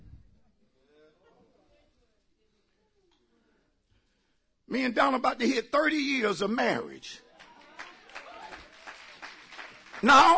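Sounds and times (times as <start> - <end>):
speech: 4.7 - 7.2, 10.0 - 10.3
audience clapping: 7.3 - 10.3.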